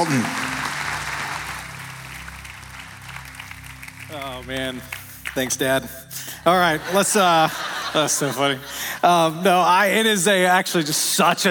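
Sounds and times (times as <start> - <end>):
speech: 0.0 - 0.4, 4.4 - 11.4
church congregation applauding: 0.0 - 8.1
laughter: 6.4 - 9.9.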